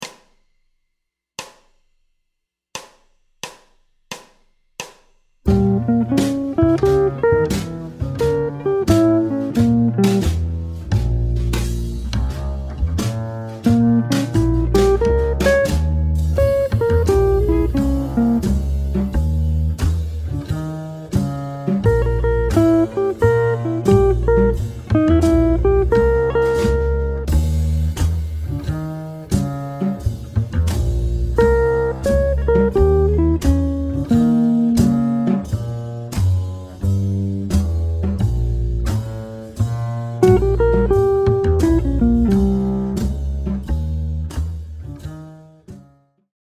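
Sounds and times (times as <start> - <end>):
jazz guitar playback: 5.5 - 46.0.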